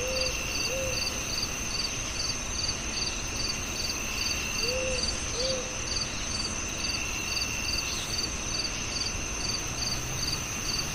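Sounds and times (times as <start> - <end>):
owl hoots: 0.0 - 1.0
cricket chirps: 0.0 - 10.9.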